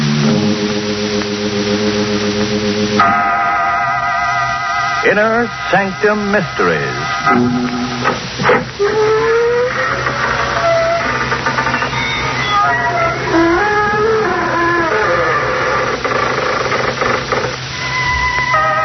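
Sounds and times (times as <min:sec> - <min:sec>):
door creaking open: 0:00.2 - 0:18.8
speech: 0:05.2 - 0:08.0.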